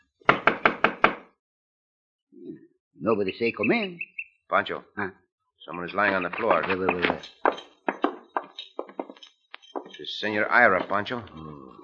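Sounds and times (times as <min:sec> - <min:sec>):
firm knocks on a cabin door: 0:00.3 - 0:01.3, 0:06.2 - 0:09.1
speech: 0:03.0 - 0:07.6, 0:10.0 - 0:11.7.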